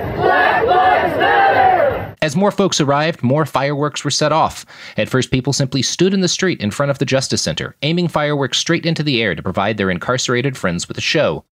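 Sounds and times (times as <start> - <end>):
protest crowd chanting in the street: 0.0 - 2.2
speech: 2.2 - 11.5.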